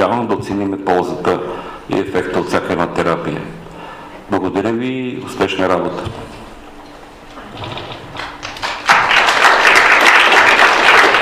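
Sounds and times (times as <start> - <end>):
speech: 0.0 - 3.6, 4.3 - 6.4
audience applause: 8.1 - 11.1.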